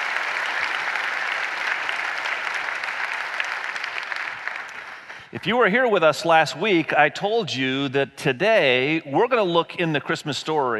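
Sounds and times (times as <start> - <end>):
audience applause: 0.0 - 5.3
speech: 5.3 - 10.7.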